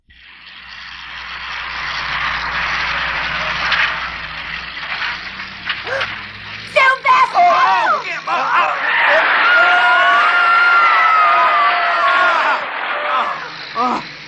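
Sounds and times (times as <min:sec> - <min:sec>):
high sustained scream: 0:00.1 - 0:14.2
people shouting: 0:05.8 - 0:14.2.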